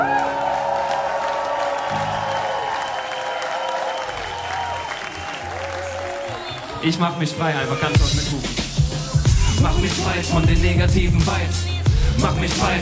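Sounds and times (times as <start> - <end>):
audience applause: 0.0 - 7.5
speech: 6.8 - 8.8, 9.6 - 12.7.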